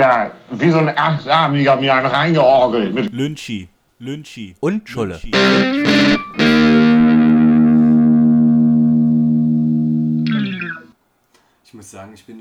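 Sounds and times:
speech: 0:00.0 - 0:06.2, 0:11.8 - 0:12.3
distorted electric guitar riff: 0:05.2 - 0:10.9.

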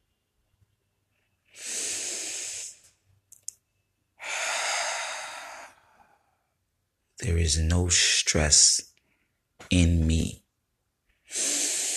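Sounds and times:
slow deep breathing: 0:01.5 - 0:03.0, 0:04.2 - 0:06.6, 0:11.3 - 0:11.9
speech: 0:07.2 - 0:08.9, 0:09.7 - 0:10.4.

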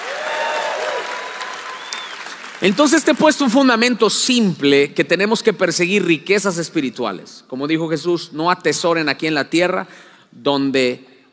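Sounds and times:
church congregation applauding: 0:00.0 - 0:03.9
speech: 0:02.6 - 0:11.1.

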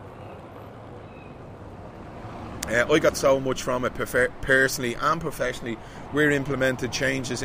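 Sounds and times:
car driving past outside: 0:01.0 - 0:03.4
speech: 0:02.7 - 0:07.4.

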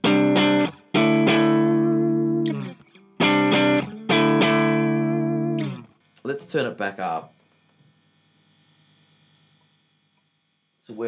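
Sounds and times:
electric guitar chords through a boosted overdrive pedal, volume turned down after pedal: 0:00.0 - 0:06.0
speech: 0:06.3 - 0:07.4, 0:10.9 - 0:11.0.

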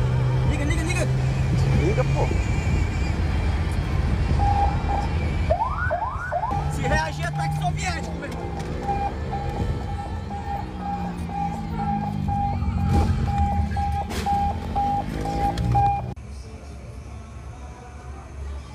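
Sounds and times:
engine and traffic rumble: 0:00.0 - 0:18.7
police car siren: 0:04.3 - 0:16.2.

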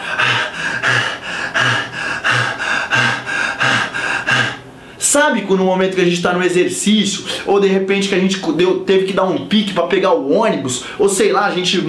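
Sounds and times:
person imitating hyperventilation with rapid shallow panting: 0:00.0 - 0:04.8
speech: 0:05.1 - 0:11.8.

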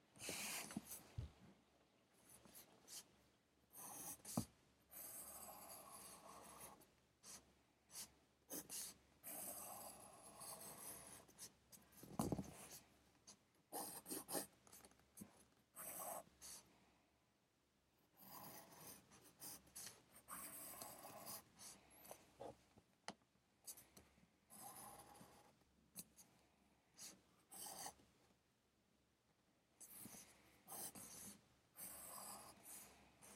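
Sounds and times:
pencil writing on paper while studying: 0:00.2 - 0:01.0, 0:03.7 - 0:16.7, 0:18.2 - 0:22.6, 0:24.5 - 0:26.2, 0:27.0 - 0:28.0, 0:29.8 - 0:33.3.

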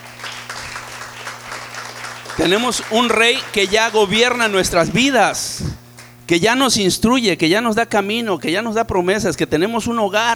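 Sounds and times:
audience applause: 0:00.0 - 0:04.9
speech: 0:02.4 - 0:05.7, 0:06.3 - 0:10.3.

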